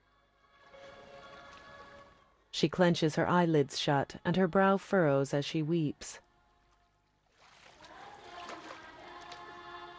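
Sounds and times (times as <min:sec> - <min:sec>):
speech: 0:02.6 - 0:06.2
water splashing in the ocean around people drifting: 0:06.6 - 0:09.7.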